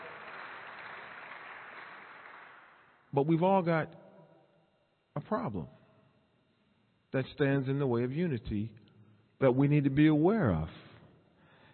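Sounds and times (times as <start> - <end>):
audience applause: 0.0 - 3.0
speech: 3.1 - 4.0, 5.2 - 5.8, 7.1 - 8.8, 9.4 - 10.8.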